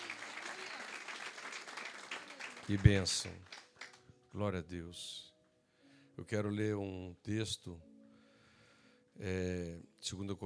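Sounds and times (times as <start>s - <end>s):
applause during a church service: 0.0s - 4.2s
speech: 2.7s - 3.6s, 4.4s - 5.3s, 6.2s - 7.9s, 9.2s - 10.4s.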